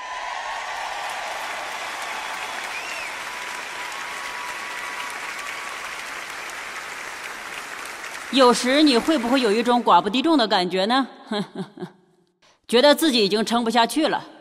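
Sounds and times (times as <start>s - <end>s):
audience applauding: 0.0s - 10.2s
speech: 8.3s - 12.0s, 12.7s - 14.3s.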